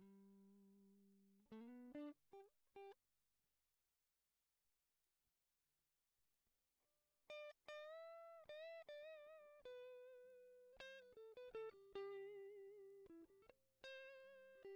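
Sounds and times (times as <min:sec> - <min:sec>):
guitar melody: 0:00.0 - 0:03.0, 0:07.3 - 0:14.7.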